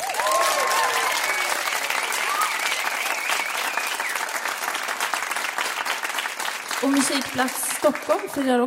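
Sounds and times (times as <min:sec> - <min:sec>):
cheers and whoops: 0:00.0 - 0:04.4
warm audience applause: 0:00.0 - 0:08.6
speech: 0:06.8 - 0:08.6.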